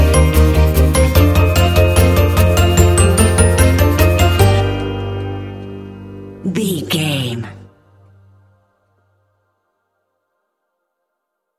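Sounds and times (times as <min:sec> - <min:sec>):
polka music without drums: 0:00.0 - 0:05.5.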